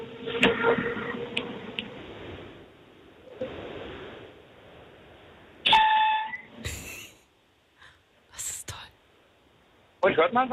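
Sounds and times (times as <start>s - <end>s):
S-Bahn commuter train rumbling with electric whining: 0.0s - 3.4s
speech: 10.2s - 10.5s.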